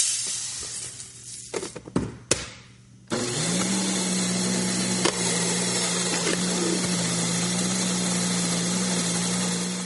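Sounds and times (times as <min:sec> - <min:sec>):
mechanical grain mill grinding: 0:03.1 - 0:09.8.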